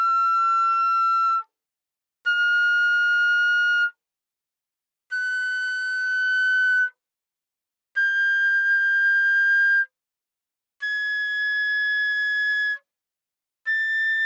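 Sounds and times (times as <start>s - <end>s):
flute without vibrato: 0.0s - 1.5s, 2.3s - 4.0s, 5.1s - 7.0s, 8.0s - 10.0s, 10.8s - 12.9s, 13.7s - 14.2s.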